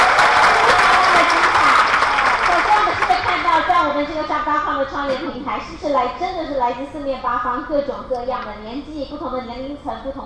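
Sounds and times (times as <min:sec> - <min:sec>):
warm applause: 0:00.0 - 0:03.9
speech: 0:04.9 - 0:10.2.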